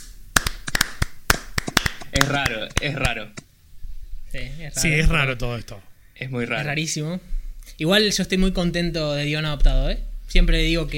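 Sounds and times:
sparse hand claps from a few people greeting a guest: 0.0s - 3.5s
speech: 2.2s - 3.4s, 4.3s - 10.9s.

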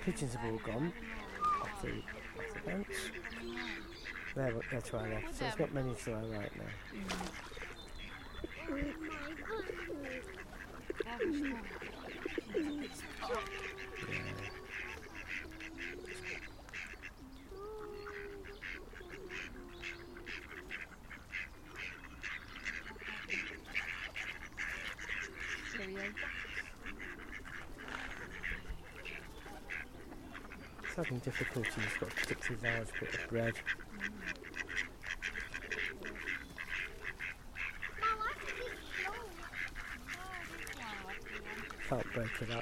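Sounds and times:
speech: 0.0s - 7.6s, 8.7s - 14.5s, 31.2s - 33.8s, 41.9s - 42.6s
ducks and geese calling by pond: 0.0s - 42.6s.

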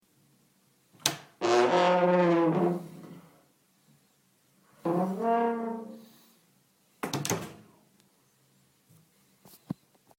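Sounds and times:
toilet door creak like a tuba: 1.0s - 3.2s, 4.8s - 6.0s.

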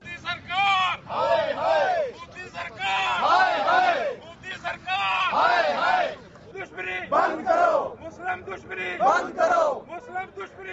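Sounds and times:
journalists chanting slogans at a protest in front of the Islamabad Press Club: 1.1s - 4.2s, 5.2s - 6.3s, 6.9s - 8.0s, 8.6s - 9.9s.

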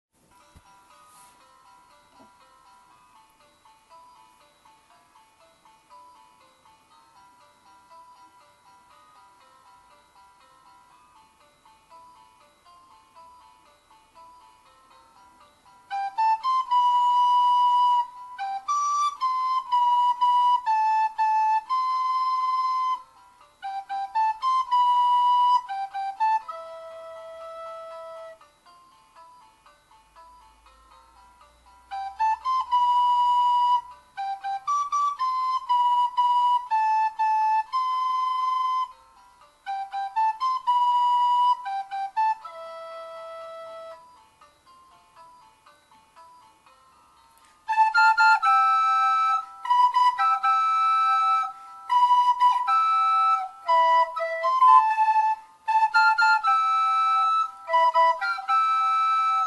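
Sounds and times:
flute: 15.8s - 28.7s, 31.9s - 44.3s, 47.6s - 59.4s.

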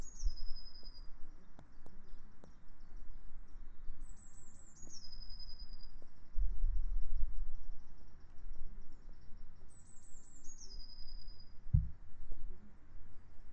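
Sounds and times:
birdsong: 0.0s - 6.0s, 7.2s - 11.9s.

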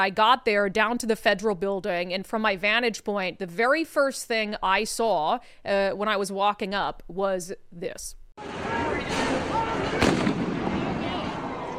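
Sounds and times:
speech: 0.0s - 8.8s
rioters crowd roar: 8.4s - 11.7s
massive fireworks thrown into a burning dumpster by rioters: 9.1s - 11.3s.

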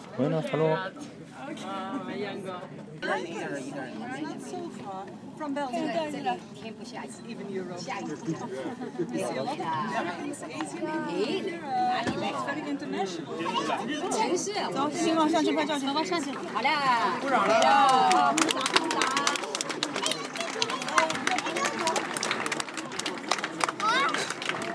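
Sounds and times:
large crowd chattering: 0.0s - 24.7s
people clapping and cheering at the sunset: 16.2s - 24.7s.

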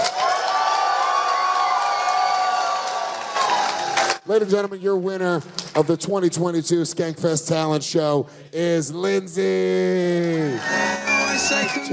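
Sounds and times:
audience cheering: 0.0s - 4.2s
audience clapping: 0.0s - 6.3s
speech: 4.3s - 11.9s.

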